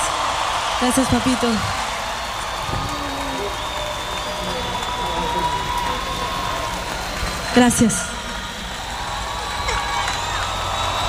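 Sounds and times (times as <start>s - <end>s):
audience applause at a live radio event: 0.0s - 11.0s
speech: 0.8s - 1.8s, 7.6s - 8.1s.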